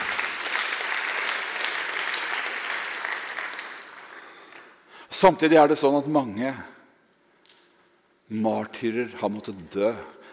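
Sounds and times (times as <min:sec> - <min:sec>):
audience applause: 0:00.0 - 0:04.8
speech: 0:05.2 - 0:06.8, 0:08.3 - 0:10.2.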